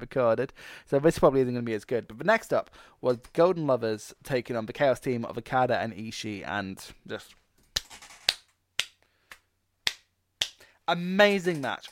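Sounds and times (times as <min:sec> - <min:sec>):
speech: 0:00.0 - 0:08.0, 0:10.9 - 0:11.8
hand clapping: 0:07.8 - 0:10.7, 0:11.3 - 0:11.8.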